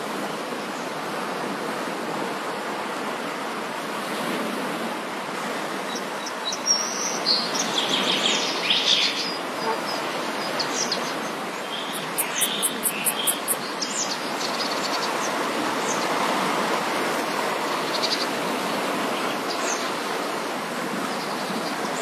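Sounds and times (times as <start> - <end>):
morning waves at the seaside: 0.0 - 22.0
bird calls chirping: 6.2 - 16.1.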